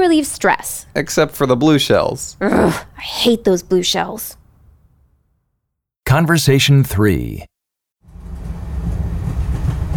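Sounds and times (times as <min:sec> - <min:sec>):
speech: 0:00.0 - 0:04.4, 0:06.1 - 0:07.5
train rolling along the tracks: 0:08.1 - 0:09.9.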